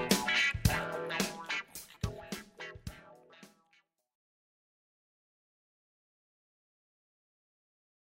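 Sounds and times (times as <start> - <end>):
wedding band playing: 0.0 - 3.4.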